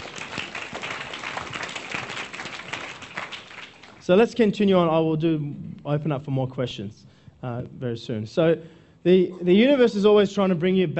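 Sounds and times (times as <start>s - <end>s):
audience applause: 0.0s - 4.0s
speech: 4.0s - 10.9s.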